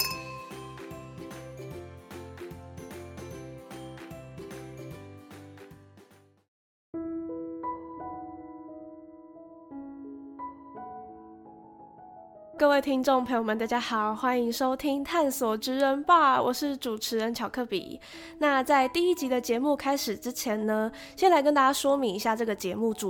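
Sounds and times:
glasses clinking in a toast: 0.0 - 0.8
speech: 12.6 - 23.0.

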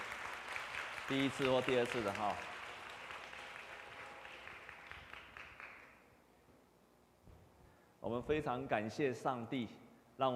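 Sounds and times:
audience applause: 0.0 - 5.9
speech: 1.1 - 2.5, 8.0 - 10.3.

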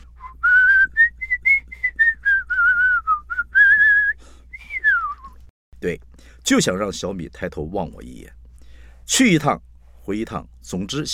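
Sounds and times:
person whistling a melody alone: 0.0 - 5.4
speech: 5.8 - 8.4, 9.1 - 11.1.

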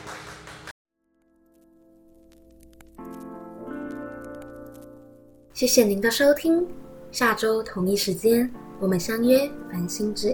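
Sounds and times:
audience applause: 0.0 - 0.7
speech: 5.6 - 10.3.

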